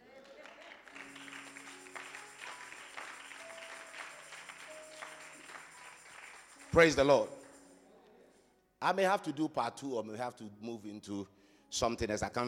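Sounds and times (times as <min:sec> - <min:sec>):
audience clapping: 0:00.0 - 0:07.6
speech: 0:06.8 - 0:07.4, 0:08.8 - 0:12.4.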